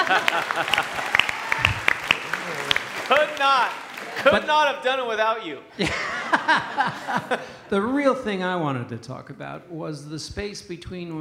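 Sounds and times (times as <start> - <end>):
laughter: 0.0 - 3.3, 3.9 - 4.8, 5.7 - 7.8
audience applause: 0.0 - 4.8
speech: 0.1 - 1.8, 3.1 - 11.1.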